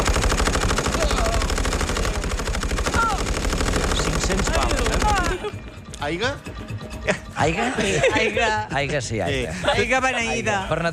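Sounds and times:
machine gun fire: 0.0s - 5.6s
laughter: 4.8s - 5.8s, 6.9s - 10.8s
speech: 6.0s - 6.5s, 7.1s - 10.9s.

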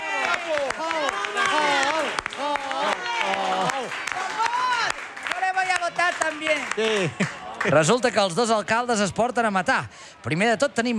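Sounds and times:
crowd applauding: 0.0s - 8.4s
speech: 6.8s - 10.9s.

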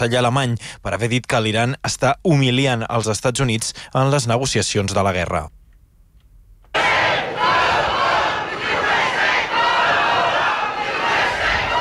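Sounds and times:
speech: 0.0s - 5.6s
large protest crowd shouting: 6.8s - 11.7s.

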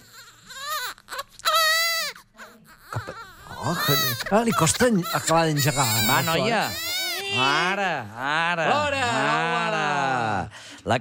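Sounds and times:
newborn baby crying: 0.0s - 8.2s
speech: 3.6s - 10.9s.

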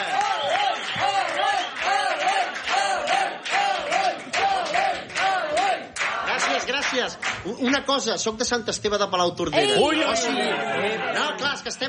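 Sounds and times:
audience applause: 0.0s - 7.8s
speech: 7.0s - 11.8s
laughter: 9.8s - 11.8s.

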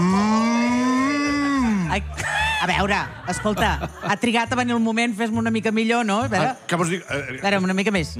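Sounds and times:
person imitating a cow mooing: 0.0s - 1.9s
laughter: 2.0s - 4.5s
speech: 2.0s - 8.1s.

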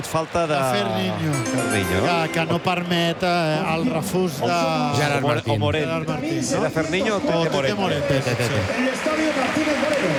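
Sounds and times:
football stadium crowd applauding at the Martínez Valero: 0.0s - 3.6s, 7.1s - 10.1s
speech: 0.0s - 10.1s.

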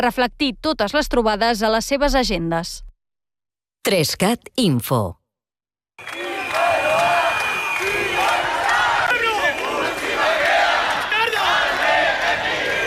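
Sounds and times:
speech: 0.0s - 2.9s, 3.8s - 5.2s, 6.0s - 6.2s
crowd of demonstrators chanting in the street: 6.0s - 12.8s.

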